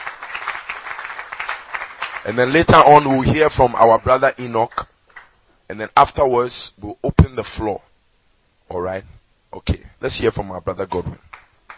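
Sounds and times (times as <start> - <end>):
group of people clapping: 0.0 - 5.4, 10.9 - 11.7
speech: 2.2 - 4.9, 5.7 - 7.9, 8.7 - 11.4.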